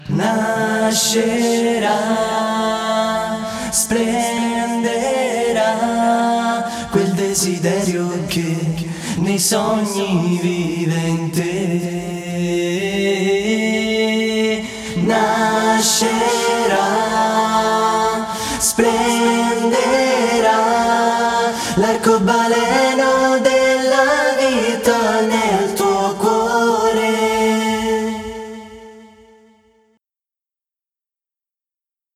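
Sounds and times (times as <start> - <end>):
a cappella singing: 0.0 - 29.9.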